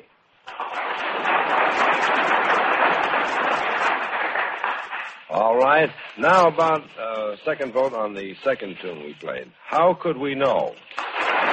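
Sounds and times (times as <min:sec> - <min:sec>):
studio audience applause: 0:00.5 - 0:06.7, 0:10.9 - 0:11.5
speech: 0:05.6 - 0:11.5.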